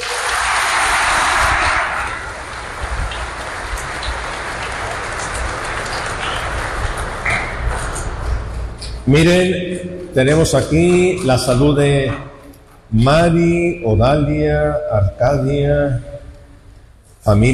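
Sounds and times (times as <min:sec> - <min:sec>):
crowd applause: 0:00.0 - 0:08.2
speech: 0:09.1 - 0:12.3, 0:12.9 - 0:16.1, 0:17.2 - 0:17.5.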